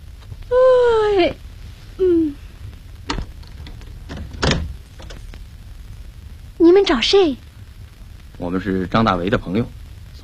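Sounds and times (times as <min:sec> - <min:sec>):
speech: 0:01.2 - 0:01.4, 0:06.8 - 0:07.5, 0:08.5 - 0:10.2
home's front door creaking open: 0:03.1 - 0:05.3.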